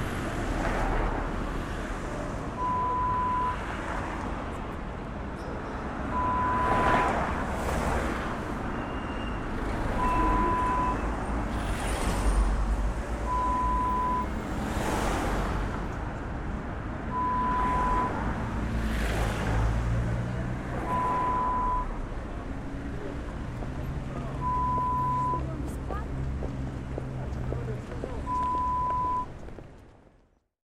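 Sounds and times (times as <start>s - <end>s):
city street sounds: 0.0s - 30.5s.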